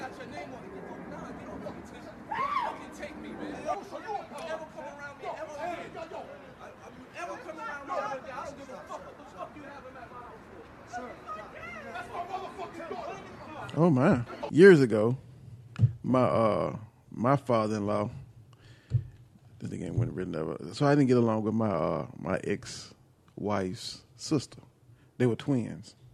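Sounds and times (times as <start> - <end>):
kids screaming in the background: 2.2 - 4.4, 7.1 - 13.7
speech: 13.8 - 15.3, 16.1 - 18.2, 19.6 - 26.0.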